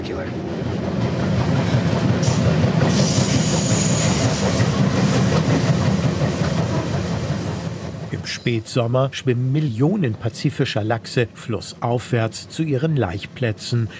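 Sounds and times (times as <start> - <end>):
passenger train clattering along rails: 0.0 - 10.5
speech: 0.1 - 0.7, 8.2 - 13.9.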